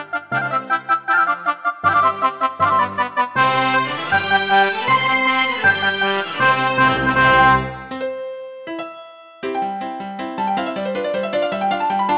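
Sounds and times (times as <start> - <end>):
keytar playing classical music: 0.0 - 12.1.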